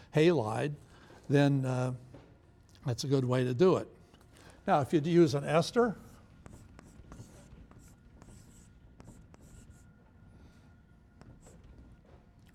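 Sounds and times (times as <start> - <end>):
low noise: 0.0 - 12.5
speech: 0.2 - 2.1, 2.8 - 4.0, 4.7 - 6.0
chalk or marker writing on a board during an organic chemistry lecture: 6.0 - 10.6, 11.2 - 12.0.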